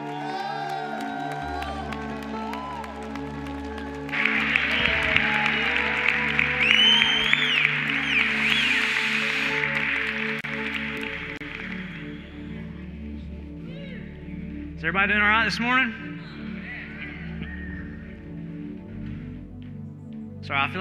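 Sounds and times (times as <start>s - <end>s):
whoops: 0.0s - 12.5s
congregation clapping and cheering to welcome a pastor at a church service: 0.0s - 13.0s
sustained musical tones: 0.0s - 20.7s
speech: 14.9s - 16.1s, 20.5s - 20.7s.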